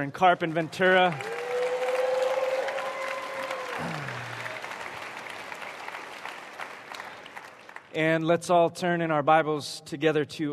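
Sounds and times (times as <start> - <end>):
speech: 0.0 - 1.4, 3.8 - 4.2, 7.9 - 10.5
church congregation applauding to welcome its other campuses: 0.0 - 8.0.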